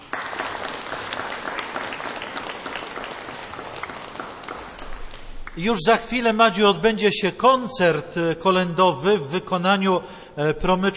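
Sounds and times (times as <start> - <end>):
warm audience applause: 0.0 - 5.8
speech: 5.6 - 10.9.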